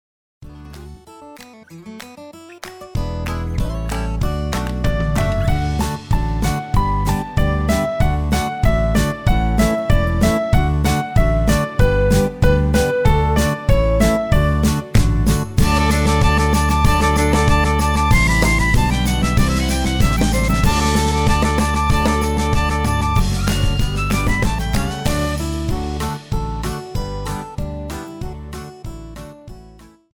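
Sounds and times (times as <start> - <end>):
instrumental music: 0.5 - 29.9.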